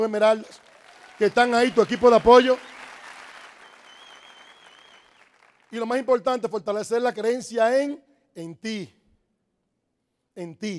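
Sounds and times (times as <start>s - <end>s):
speech: 0.0s - 2.7s, 5.7s - 9.0s, 10.4s - 10.7s
crowd applauding: 0.4s - 6.0s.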